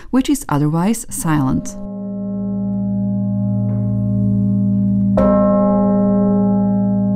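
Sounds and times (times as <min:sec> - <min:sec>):
speech: 0:00.1 - 0:01.9
bishop's bell from the northern tower of the Cathedral of Saints Peter and Paul: 0:01.4 - 0:07.1.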